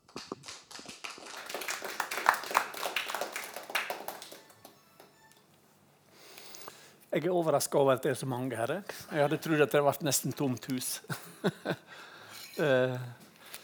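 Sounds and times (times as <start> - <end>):
audience applause: 0.0 - 5.3
speech: 7.1 - 13.2
laughter: 11.0 - 12.0.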